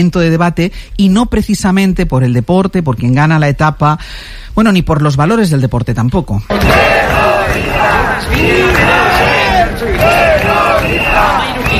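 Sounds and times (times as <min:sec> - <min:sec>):
speech: 0:00.0 - 0:08.9
protest crowd chanting in Bilbao: 0:06.5 - 0:11.7.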